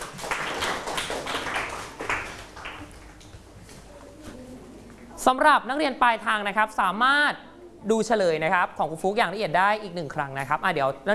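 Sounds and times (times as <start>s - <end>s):
students clapping: 0.0s - 3.4s
speech: 5.3s - 11.1s.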